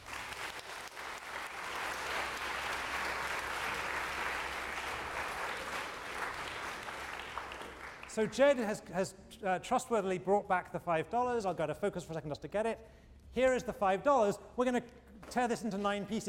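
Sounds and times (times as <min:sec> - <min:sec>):
crowd round of applause: 0:00.0 - 0:08.3
speech: 0:08.2 - 0:16.2.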